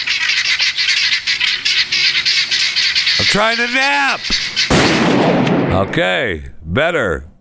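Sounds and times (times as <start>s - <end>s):
guinea hens squawking: 0.0s - 5.1s
speech: 3.2s - 7.3s.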